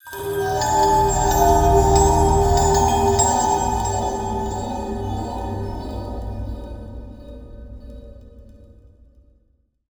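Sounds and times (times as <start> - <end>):
musical stinger: 0.1 - 6.5.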